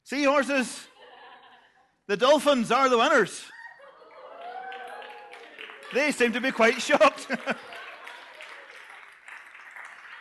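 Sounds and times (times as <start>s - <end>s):
speech: 0.1s - 0.9s, 2.1s - 3.6s, 5.9s - 7.8s
laughter: 0.9s - 1.9s, 3.5s - 4.7s, 6.0s - 8.6s
audience applause: 4.0s - 10.1s.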